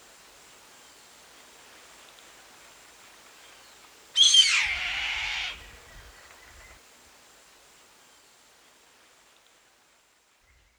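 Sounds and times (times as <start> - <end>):
bird harsh screech: 4.2 - 5.6.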